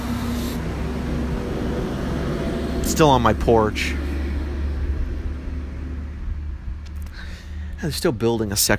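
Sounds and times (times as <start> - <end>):
truck rolling past a house porch in a neighbourhood under construction: 0.0 - 8.7
speech: 2.9 - 4.0, 7.8 - 8.7.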